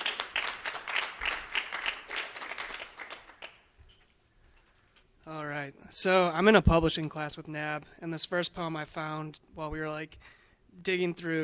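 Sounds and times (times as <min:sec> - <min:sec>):
audience applause: 0:00.0 - 0:03.7
speech: 0:05.3 - 0:11.4.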